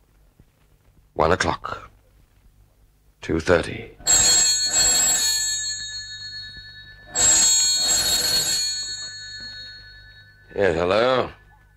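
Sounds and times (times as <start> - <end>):
speech: 1.2 - 1.9, 3.2 - 4.2, 10.6 - 11.4
telephone ringing: 4.0 - 11.7.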